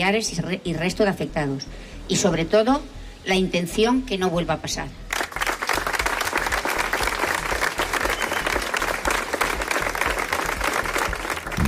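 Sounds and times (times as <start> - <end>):
speech: 0.0 - 5.3
large crowd sustained applause: 5.1 - 11.6.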